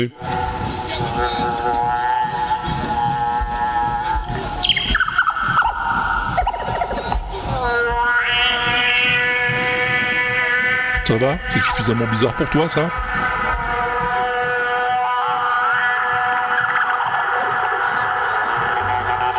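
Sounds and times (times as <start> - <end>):
speech: 0.0 - 1.7, 11.1 - 13.3
pipe instrument playing droning buzzy tones: 0.0 - 19.3.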